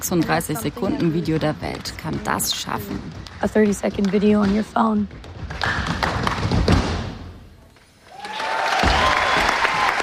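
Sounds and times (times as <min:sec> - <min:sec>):
speech: 0:00.0 - 0:06.0
theatre audience applause at an opera house: 0:08.0 - 0:10.0.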